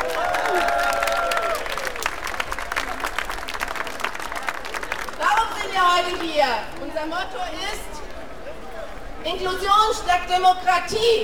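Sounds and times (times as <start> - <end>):
whistles and cheers: 0.0 - 2.0
crowd applause for drummers: 0.0 - 6.4
speech: 6.0 - 7.9, 9.2 - 11.2.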